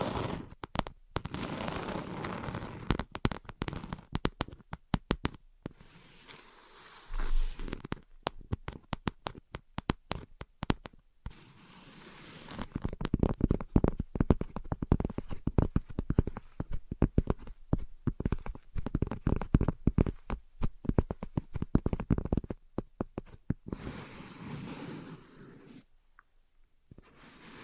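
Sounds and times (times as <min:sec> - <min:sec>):
invisible tapping and scratching: 0:00.4 - 0:01.6, 0:02.5 - 0:05.8, 0:07.6 - 0:11.4, 0:12.4 - 0:23.7.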